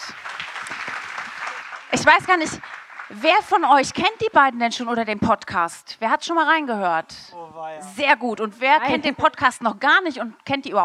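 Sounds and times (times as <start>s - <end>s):
audience applause: 0.0s - 4.6s
speech: 1.9s - 10.8s.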